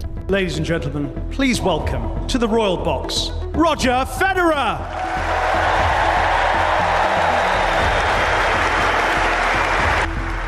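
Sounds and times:
speech: 0:00.3 - 0:05.4
standing ovation applause from stadium spectators: 0:04.8 - 0:10.4.

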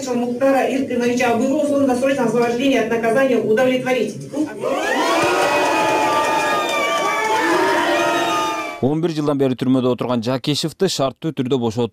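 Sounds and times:
speech: 0:00.0 - 0:05.1, 0:08.8 - 0:11.9
supporters in a courtroom clapping a parole decision: 0:04.8 - 0:08.8.

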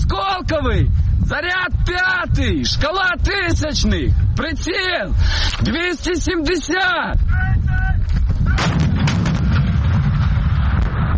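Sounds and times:
speech: 0:00.5 - 0:07.9
artillery gun firing during training exercise: 0:08.5 - 0:11.1.

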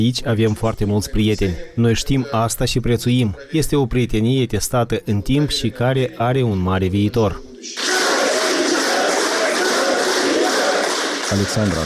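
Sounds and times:
speech: 0:00.0 - 0:07.9, 0:11.3 - 0:11.8
audience applauding intensely at festivity: 0:07.8 - 0:11.8.

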